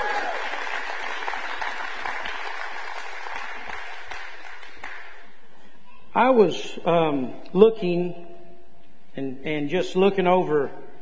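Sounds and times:
audience applause: 0:00.0 - 0:05.3
speech: 0:06.2 - 0:08.3, 0:09.2 - 0:10.8.

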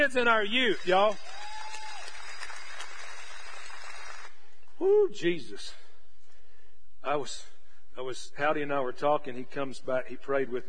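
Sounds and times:
speech: 0:00.0 - 0:01.3, 0:04.8 - 0:05.8, 0:07.0 - 0:10.6
room full of people clapping: 0:00.0 - 0:04.5.

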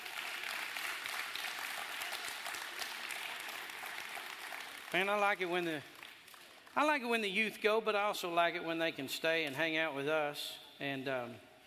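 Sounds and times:
audience applause: 0:00.0 - 0:06.8
speech: 0:04.9 - 0:05.9, 0:06.8 - 0:11.5.

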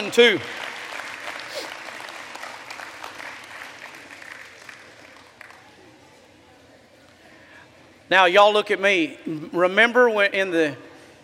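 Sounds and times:
speech: 0:00.0 - 0:00.6, 0:08.1 - 0:10.9
audience applause: 0:00.0 - 0:05.7.

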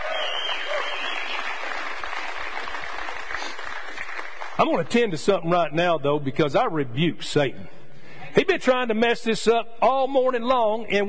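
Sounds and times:
audience applause for the band: 0:00.0 - 0:04.9
speech: 0:04.6 - 0:07.8, 0:08.4 - 0:11.0.

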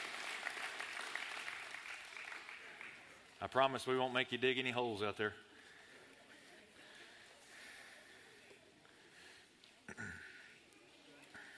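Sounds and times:
audience applauding for the kids: 0:00.0 - 0:03.4
speech: 0:03.4 - 0:05.5.

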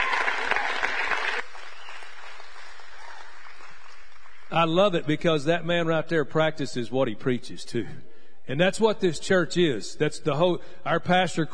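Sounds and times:
audience applause: 0:00.0 - 0:04.5
speech: 0:04.5 - 0:11.5.

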